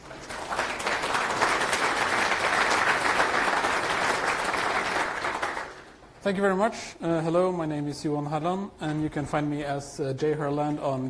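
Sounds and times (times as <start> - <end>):
conference audience applause welcoming a speaker: 0.0 - 6.0
speech: 6.2 - 11.0.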